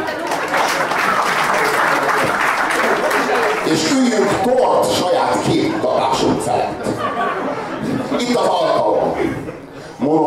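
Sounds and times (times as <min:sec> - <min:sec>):
audience applauding: 0:00.0 - 0:04.7
laughter: 0:00.1 - 0:04.4, 0:05.7 - 0:09.8.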